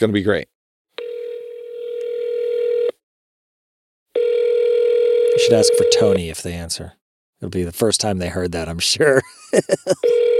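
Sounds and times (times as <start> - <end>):
speech: 0.0 - 0.5, 5.5 - 10.3
telephone ringback tone on speakerphone: 1.0 - 3.0, 4.2 - 6.2, 10.0 - 10.3
laughter: 9.1 - 10.2.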